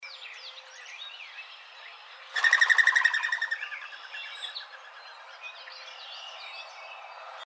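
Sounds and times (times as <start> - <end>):
birds: 0.0 - 7.4
mourning dove calling: 2.3 - 4.6.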